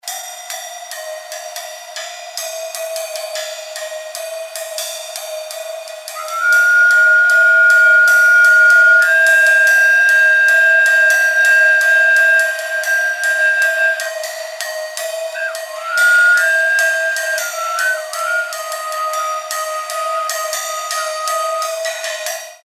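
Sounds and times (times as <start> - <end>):
overtone flute shifting upward: 6.2 - 14.4, 15.2 - 22.1.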